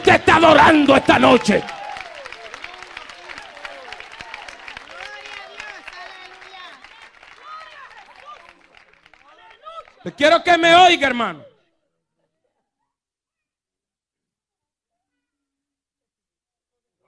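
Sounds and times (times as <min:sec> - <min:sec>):
audience clapping: 0:00.0 - 0:11.3
speech: 0:00.2 - 0:01.8, 0:10.0 - 0:11.5.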